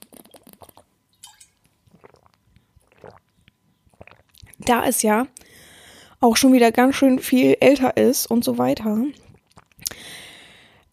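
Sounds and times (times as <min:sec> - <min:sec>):
person sipping a drink and swallowing: 0:00.0 - 0:00.9, 0:01.6 - 0:04.6, 0:09.2 - 0:10.1
speech: 0:04.7 - 0:05.4, 0:06.2 - 0:09.2.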